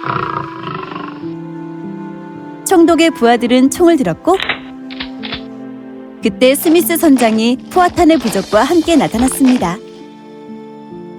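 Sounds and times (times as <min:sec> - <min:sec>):
lion roaring: 0:00.0 - 0:01.3
speech: 0:02.7 - 0:04.5, 0:06.2 - 0:09.8.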